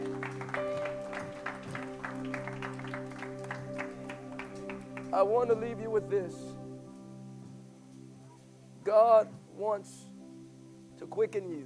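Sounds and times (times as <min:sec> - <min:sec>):
audience hand clapping: 0:00.0 - 0:06.0
speech: 0:05.2 - 0:06.6, 0:08.9 - 0:10.1, 0:11.1 - 0:11.6.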